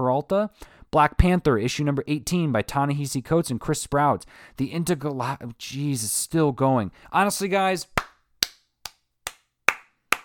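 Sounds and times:
speech: 0:00.0 - 0:08.0
single hand clap: 0:08.0 - 0:10.2.

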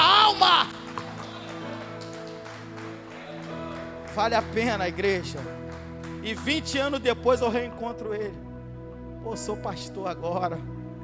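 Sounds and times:
audience clapping: 0:00.0 - 0:07.0
speech: 0:04.2 - 0:05.6, 0:06.2 - 0:08.5, 0:09.2 - 0:11.0.

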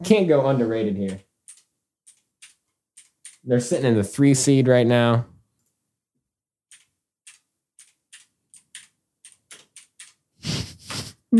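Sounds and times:
speech: 0:00.0 - 0:01.3, 0:03.4 - 0:05.3
typing on a computer keyboard: 0:01.1 - 0:03.5, 0:06.7 - 0:10.3.

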